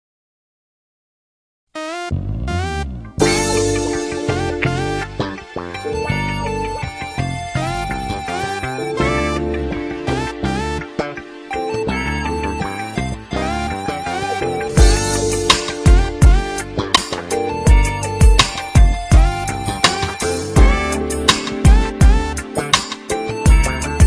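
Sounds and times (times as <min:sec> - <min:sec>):
g-funk instrumental beat: 0:02.1 - 0:24.0.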